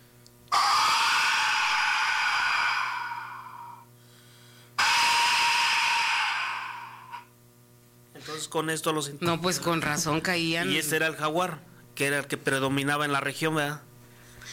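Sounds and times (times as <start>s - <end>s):
death whistle shrieking: 0.5s - 3.9s, 4.8s - 7.3s
speech: 8.4s - 14.5s.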